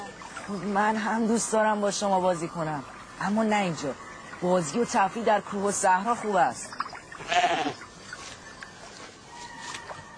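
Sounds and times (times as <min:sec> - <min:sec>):
hiss: 0:00.0 - 0:10.1
speech: 0:00.5 - 0:07.6
herd of goats or sheep bleating: 0:07.2 - 0:07.9.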